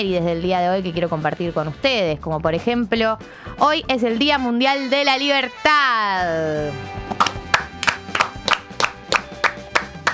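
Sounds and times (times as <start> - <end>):
speech: 0.0 - 7.4
soft tonal musical background: 0.0 - 10.1
rhythmic clapping: 7.0 - 10.1.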